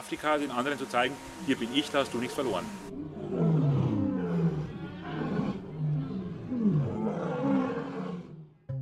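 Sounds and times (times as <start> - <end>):
speech: 0.1 - 3.4
lion roaring: 2.9 - 8.7.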